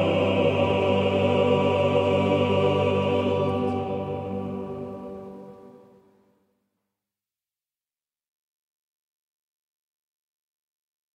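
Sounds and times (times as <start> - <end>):
male choir singing: 0.0 - 6.0.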